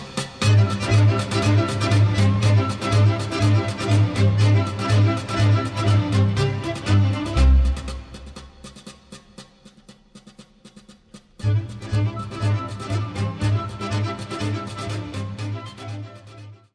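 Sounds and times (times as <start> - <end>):
Romanian folk tune: 0.4 - 8.6, 11.4 - 16.6.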